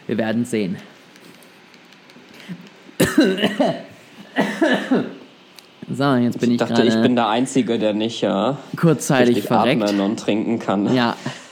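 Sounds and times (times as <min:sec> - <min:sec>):
speech: 0:00.1 - 0:01.0, 0:03.2 - 0:05.2, 0:05.8 - 0:11.4
person coughing: 0:03.0 - 0:05.2.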